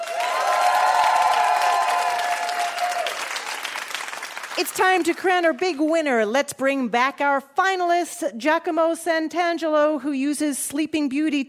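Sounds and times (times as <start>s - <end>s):
audience cheering at a live competition show: 0.0s - 4.6s
audience applause at a live competition show: 0.0s - 5.2s
speech: 4.6s - 11.4s.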